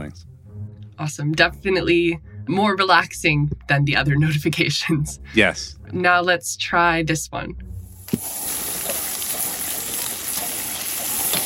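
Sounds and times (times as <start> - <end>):
speech: 0.1 - 0.3, 1.0 - 8.4
bacon sizzling in a pan: 7.8 - 11.4.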